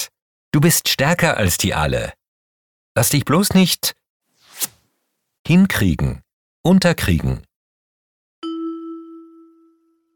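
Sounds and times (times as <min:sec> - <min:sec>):
speech: 0:00.6 - 0:02.2, 0:03.0 - 0:04.0, 0:05.5 - 0:07.5
bright chime signal tone in a German listening exercise: 0:08.4 - 0:10.1.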